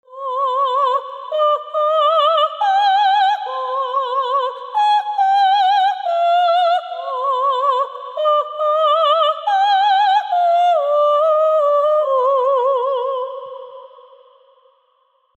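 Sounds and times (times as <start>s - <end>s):
singing voice: 0.0s - 14.6s.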